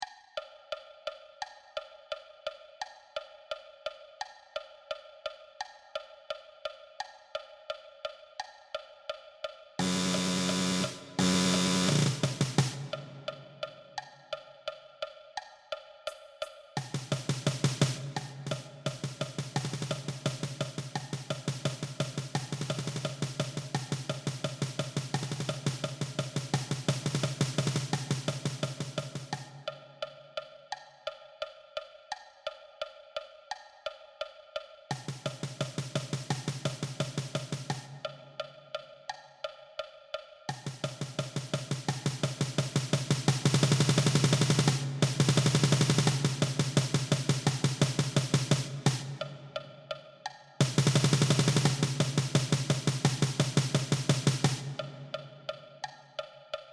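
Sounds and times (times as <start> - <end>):
snare drum: 9.8 - 14.1, 16.8 - 29.8, 34.9 - 38.2, 40.5 - 49.6, 50.4 - 56.0.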